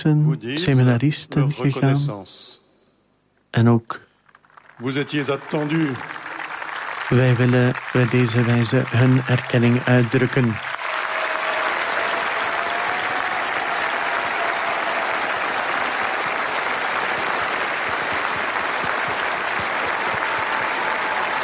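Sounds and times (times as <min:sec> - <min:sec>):
speech: 0:00.0 - 0:02.6, 0:03.5 - 0:04.1, 0:04.8 - 0:06.3, 0:07.1 - 0:10.8
applause of 700,000 people: 0:04.4 - 0:21.4.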